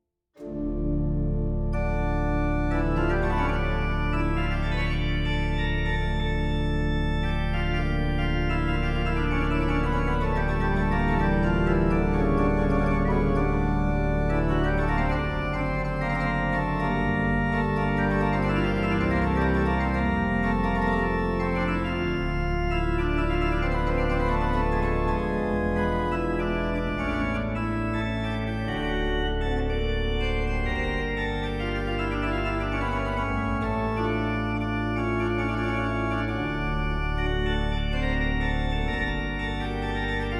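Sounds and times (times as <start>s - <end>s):
organ jeu de tierce registration: 0.4s - 40.3s.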